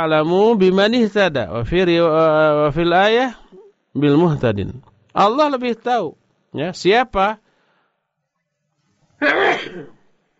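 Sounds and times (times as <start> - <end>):
speech: 0.0 - 7.4, 9.2 - 10.0
sneeze: 9.2 - 10.1.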